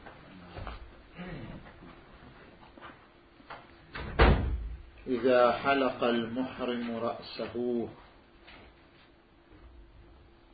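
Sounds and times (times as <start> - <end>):
door pushed shut: 3.9 - 4.8
speech: 5.1 - 8.0.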